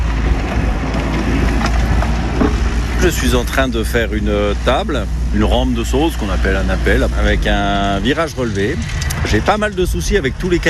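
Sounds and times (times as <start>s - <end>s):
mini excavator engine working on a rocky bike park trail at Métabier: 0.0s - 10.6s
speech: 3.1s - 10.6s.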